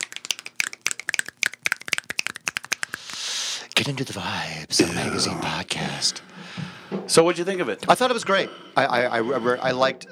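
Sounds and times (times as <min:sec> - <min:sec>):
people clapping: 0:00.0 - 0:03.3
people snapping fingers: 0:00.0 - 0:03.3
speech: 0:03.8 - 0:10.0.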